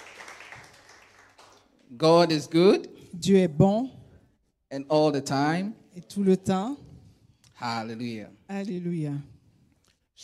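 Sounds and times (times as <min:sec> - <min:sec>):
audience clapping: 0:00.0 - 0:01.9
speech: 0:01.9 - 0:04.0, 0:04.7 - 0:06.9, 0:07.6 - 0:09.3.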